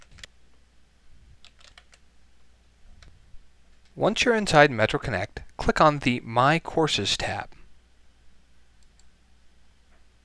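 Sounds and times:
typing username and password on a computer keyboard: 0:01.4 - 0:02.0
speech: 0:04.0 - 0:07.6.

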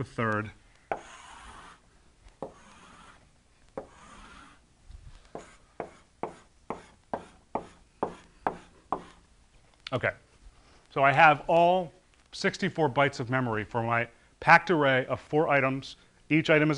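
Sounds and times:
speech: 0:00.0 - 0:00.6, 0:09.9 - 0:10.2, 0:10.9 - 0:16.7
drawing array boxes on a board during a programming lecture: 0:00.9 - 0:01.8, 0:02.4 - 0:04.6, 0:05.2 - 0:09.2.

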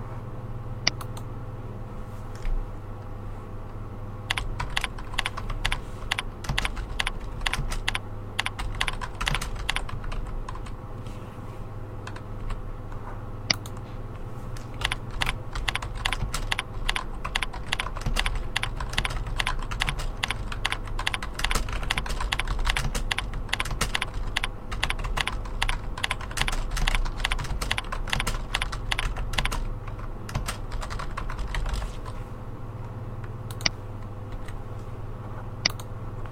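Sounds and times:
low steady hum: 0:00.0 - 0:36.3
typing a message on a computer keyboard: 0:04.3 - 0:10.7, 0:14.8 - 0:32.2.

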